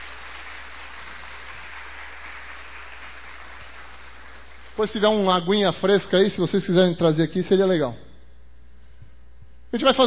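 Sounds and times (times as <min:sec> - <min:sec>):
audience applauding: 0:00.0 - 0:05.0
speech: 0:04.8 - 0:08.0, 0:09.7 - 0:10.0.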